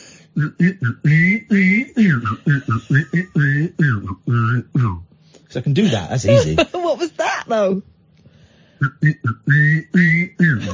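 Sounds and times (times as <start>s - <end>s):
person whistling a tune while humming: 0.1s - 5.2s, 8.8s - 10.7s
speech: 0.4s - 8.0s, 8.8s - 10.7s.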